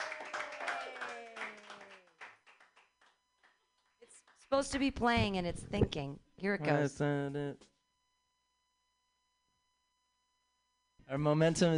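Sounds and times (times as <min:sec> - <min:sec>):
audience clapping at an open mic comedy show: 0:00.0 - 0:04.8
speech: 0:04.5 - 0:07.7, 0:11.1 - 0:11.7.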